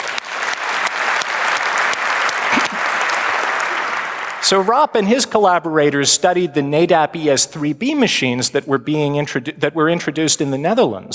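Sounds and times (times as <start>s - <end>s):
audience applause: 0.0s - 5.1s
speech: 4.4s - 11.1s.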